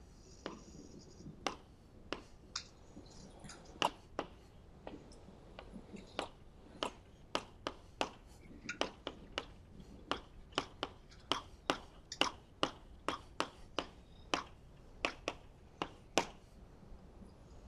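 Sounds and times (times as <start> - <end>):
writing on a board during a lecture: 0.2 - 2.4, 5.6 - 16.6.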